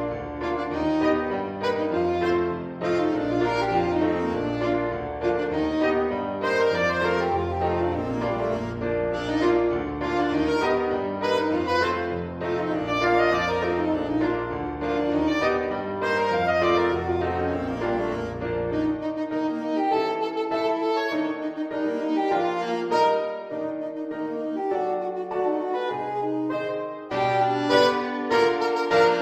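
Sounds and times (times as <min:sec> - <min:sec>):
saxophone: 0:00.0 - 0:29.2.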